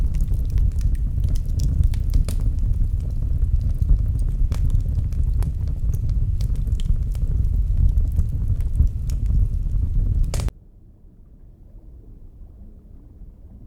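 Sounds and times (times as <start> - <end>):
violent chimney fire: 0.0 - 10.5.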